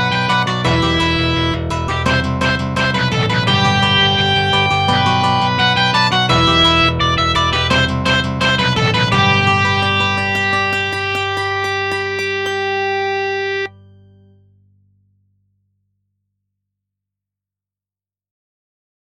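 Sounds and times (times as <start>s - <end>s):
guitar: 0.0s - 14.4s.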